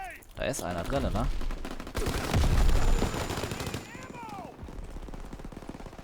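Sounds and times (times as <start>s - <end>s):
speech: 0.5s - 2.3s
submachine gun firing in a video game: 2.0s - 4.3s.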